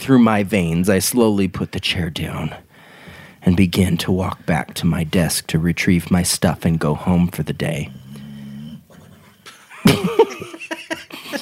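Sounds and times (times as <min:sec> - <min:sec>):
speech: 0:00.0 - 0:02.6, 0:03.4 - 0:08.0
dog snoring: 0:07.7 - 0:09.5
laughter: 0:09.5 - 0:11.4.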